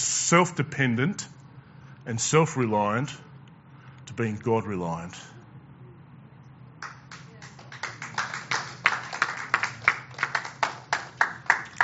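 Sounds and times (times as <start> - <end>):
speech: 0.3 - 1.4, 2.1 - 3.3, 4.2 - 5.3
audience applause: 6.8 - 11.8.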